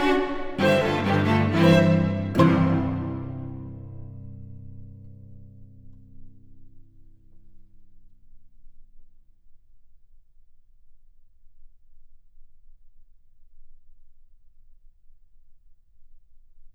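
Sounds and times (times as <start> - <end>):
violin in a sonata for violin and cello: 0.0 - 4.5
cello in a sonata for violin and cello: 0.0 - 5.6.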